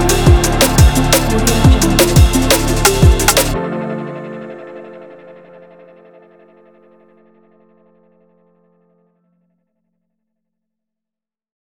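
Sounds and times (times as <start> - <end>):
inspiring drum and bass music: 0.0 - 4.1.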